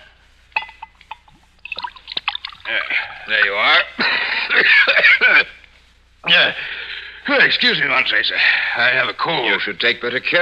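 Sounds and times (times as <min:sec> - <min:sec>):
sherry being poured into a glass: 0:00.8 - 0:03.0
laughter: 0:02.7 - 0:05.6
speech: 0:02.7 - 0:05.6, 0:06.2 - 0:10.4.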